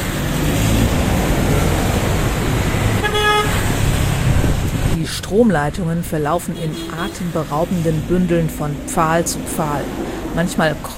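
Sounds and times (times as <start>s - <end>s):
loud city street traffic: 0.0s - 10.9s
car horn honk: 2.6s - 3.9s, 6.6s - 7.4s
speech: 5.4s - 10.9s.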